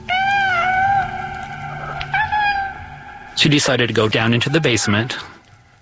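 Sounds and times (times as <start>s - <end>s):
kitten meowing in the basement: 0.0s - 3.1s
speech: 3.4s - 5.3s.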